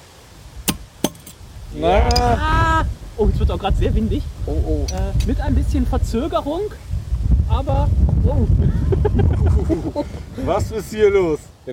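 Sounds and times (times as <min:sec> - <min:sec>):
bottle being opened with a pop: 0:00.6 - 0:01.4
speech: 0:01.7 - 0:11.7
laughter: 0:08.6 - 0:10.8.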